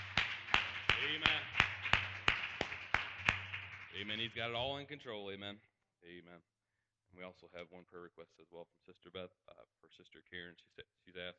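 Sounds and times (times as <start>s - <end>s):
audience applauding: 0.0s - 4.8s
speech: 4.0s - 6.5s, 7.1s - 11.3s.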